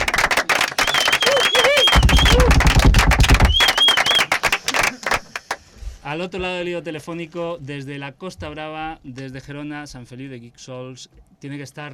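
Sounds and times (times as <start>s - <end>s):
applause: 0.0s - 5.7s
speech: 6.1s - 11.9s.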